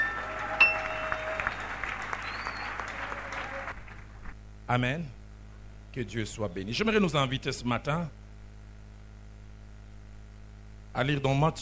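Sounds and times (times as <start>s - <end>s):
church congregation applauding during a service: 0.0s - 4.2s
speech: 4.7s - 5.2s, 6.0s - 8.2s, 11.0s - 11.5s.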